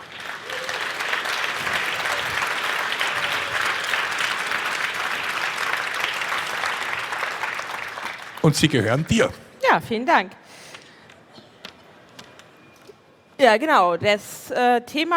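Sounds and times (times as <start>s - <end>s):
audience applause: 0.0s - 9.3s
speech: 8.4s - 10.5s, 13.4s - 15.1s.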